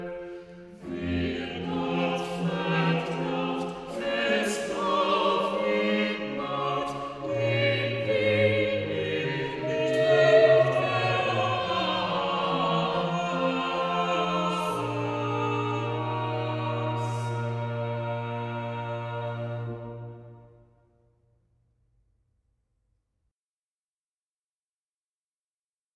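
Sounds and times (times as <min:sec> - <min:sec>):
choir singing a chorale cantata chorus: 0:00.0 - 0:20.6.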